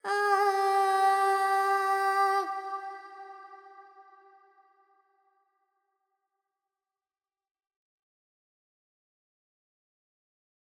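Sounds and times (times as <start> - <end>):
Carnatic female alap in raga Panthuvarali: 0.0 - 3.9.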